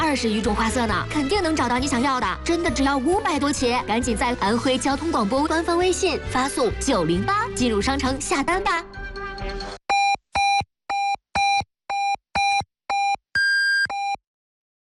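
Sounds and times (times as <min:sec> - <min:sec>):
speech: 0:00.1 - 0:09.8
radio hourly time signal beeps on a traffic station: 0:09.9 - 0:14.2.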